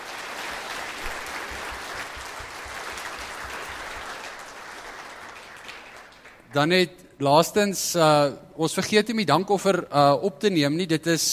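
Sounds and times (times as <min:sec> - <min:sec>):
audience clapping hands: 0:00.0 - 0:06.7
speech: 0:06.5 - 0:11.3.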